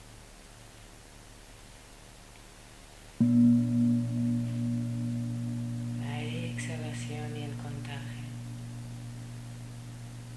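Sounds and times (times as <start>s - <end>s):
bong chime as a mindfulness cue: 3.2s - 10.3s
person speaking: 6.0s - 8.7s.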